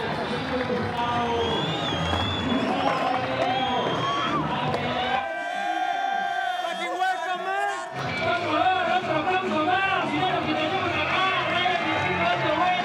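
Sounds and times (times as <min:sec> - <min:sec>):
large crowd cheering and shouting: 0:00.0 - 0:12.8
whistles: 0:01.0 - 0:04.4.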